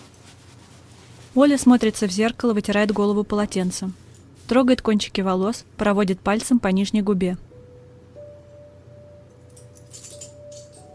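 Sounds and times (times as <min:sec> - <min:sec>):
speech: 0:01.4 - 0:07.5
key on a string jingling: 0:09.5 - 0:10.9.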